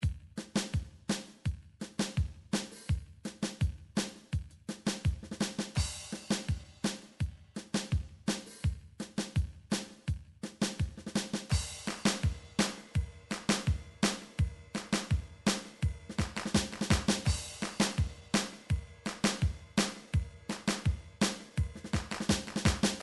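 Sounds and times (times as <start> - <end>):
MIDI surf drum beat: 0.0 - 23.0.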